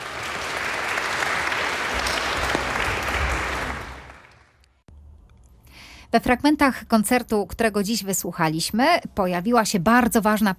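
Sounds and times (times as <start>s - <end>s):
audience applause: 0.0s - 4.6s
speech: 6.1s - 10.5s.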